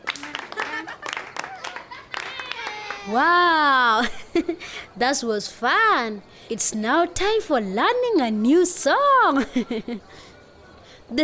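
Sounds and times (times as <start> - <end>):
children clapping: 0.0 - 3.2
laughter: 0.2 - 5.0, 9.4 - 10.3
speech: 3.1 - 10.3, 11.1 - 11.2.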